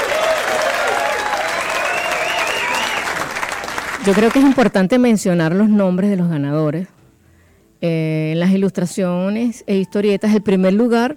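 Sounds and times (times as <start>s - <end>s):
crowd applause for the winners: 0.0s - 4.7s
faint tonal whistling: 1.5s - 3.2s
speech: 4.0s - 7.0s, 7.8s - 11.1s.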